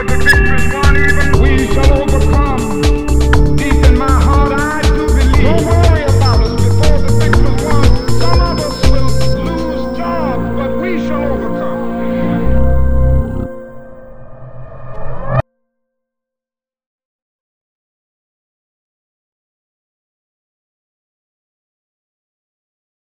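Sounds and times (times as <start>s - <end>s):
music loop: 0.0s - 13.5s.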